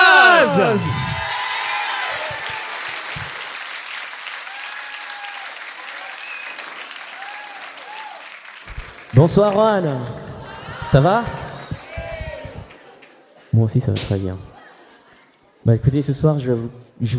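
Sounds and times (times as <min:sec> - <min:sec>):
whoops and cheers: 0:00.0 - 0:03.3, 0:04.4 - 0:08.3, 0:10.4 - 0:12.7
audience applauding: 0:00.0 - 0:13.4
speech: 0:09.2 - 0:10.2, 0:10.9 - 0:11.4, 0:13.6 - 0:14.5, 0:15.6 - 0:17.1.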